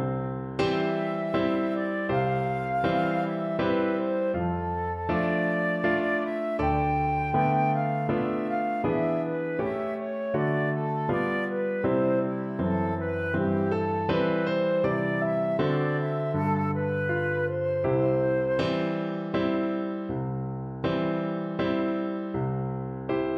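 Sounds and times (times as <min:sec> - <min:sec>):
piano piece: 0:00.0 - 0:23.3.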